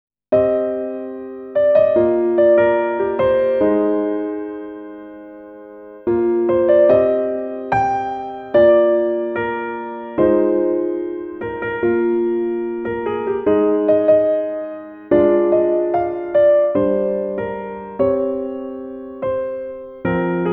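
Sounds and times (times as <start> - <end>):
instrumental music: 0.3 - 20.5.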